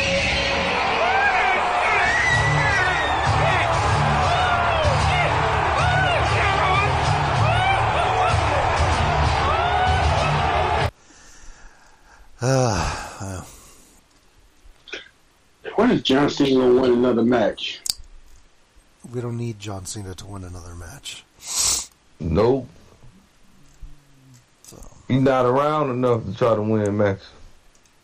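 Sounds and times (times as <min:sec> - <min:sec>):
live wrestling audience roaring and cheering: 0:00.0 - 0:10.9
speech: 0:16.1 - 0:17.8, 0:19.1 - 0:22.8, 0:24.7 - 0:27.4.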